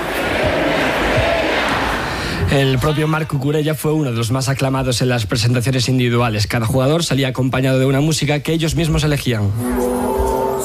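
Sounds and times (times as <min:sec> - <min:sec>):
crowd chanting at a football title celebration: 0:00.0 - 0:03.2
speech: 0:02.5 - 0:10.3.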